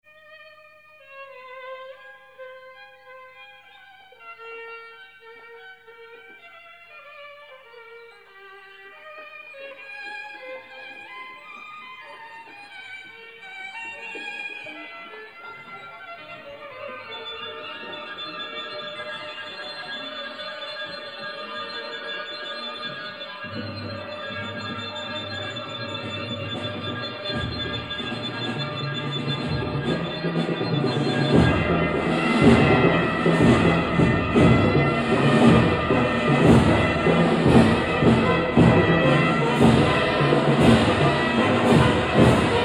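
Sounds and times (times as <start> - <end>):
orchestra playing a concerto: 13.9 - 42.6.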